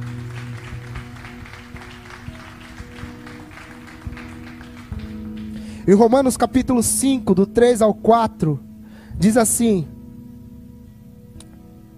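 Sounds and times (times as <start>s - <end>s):
audience applause: 0.0s - 5.8s
speech: 5.8s - 10.0s.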